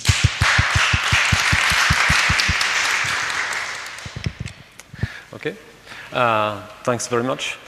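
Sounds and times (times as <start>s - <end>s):
sharp steady claps: 0.0s - 5.0s
audience applause: 0.2s - 4.2s
speech: 5.4s - 7.6s.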